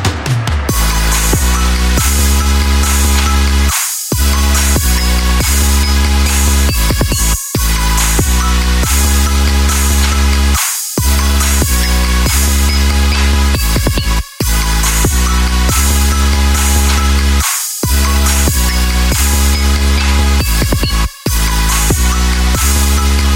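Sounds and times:
trap future bass music: 0:00.1 - 0:23.3.

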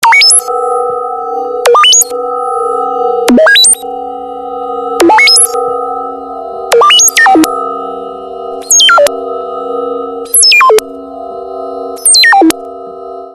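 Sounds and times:
unknown transfer signal: 0:00.0 - 0:11.0, 0:12.0 - 0:12.6.

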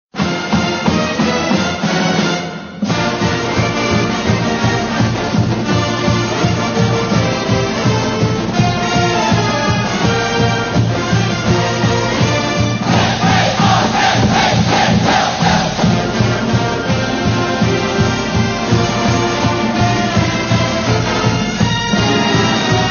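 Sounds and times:
song: 0:00.2 - 0:22.8.

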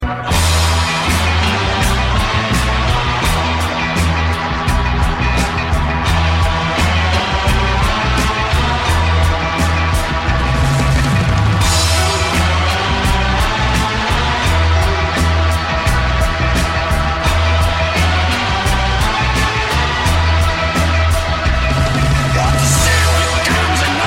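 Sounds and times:
rock music: 0:00.0 - 0:24.0.

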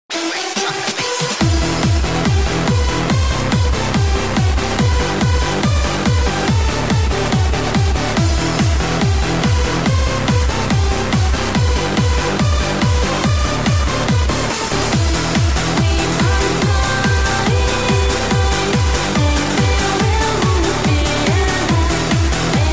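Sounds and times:
remix music: 0:00.1 - 0:22.7.

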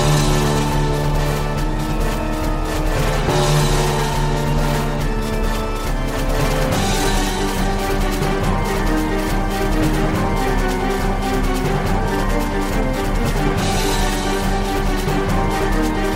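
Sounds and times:
rising tension music: 0:00.0 - 0:16.1.

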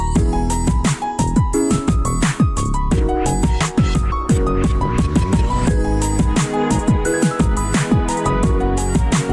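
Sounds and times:
piano music: 0:00.0 - 0:09.3.

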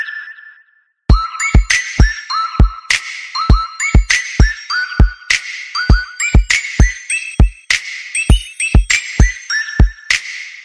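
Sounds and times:
Christmas song: 0:01.2 - 0:10.6.

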